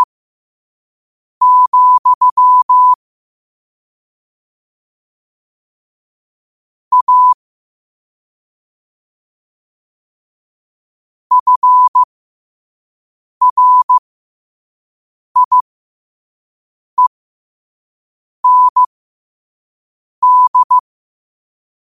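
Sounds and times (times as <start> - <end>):
morse code at 5 wpm: 1.4 - 3.0, 6.9 - 7.4, 11.3 - 12.1, 13.4 - 14.0, 15.4 - 15.6, 18.4 - 18.9, 20.2 - 20.8.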